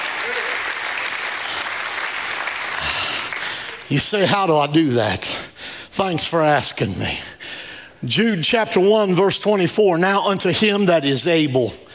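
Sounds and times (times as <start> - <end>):
audience hand clapping: 0.0 - 4.0
speech: 3.9 - 11.9.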